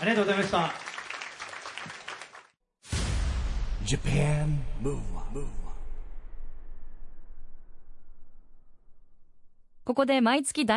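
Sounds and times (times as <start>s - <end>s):
speech: 0.0s - 0.8s, 3.9s - 5.6s, 9.9s - 10.7s
audience applause: 0.0s - 2.5s.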